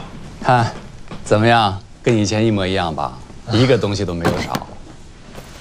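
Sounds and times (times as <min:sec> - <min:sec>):
speech: 0:00.5 - 0:04.7
door thud: 0:04.2 - 0:04.8.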